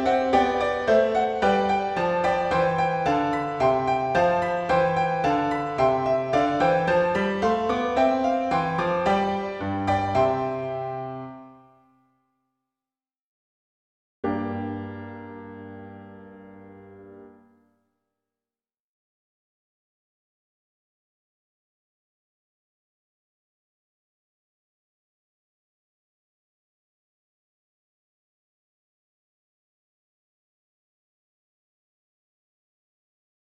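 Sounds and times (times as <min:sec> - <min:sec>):
solo piano: 0:00.0 - 0:12.0, 0:14.2 - 0:17.8.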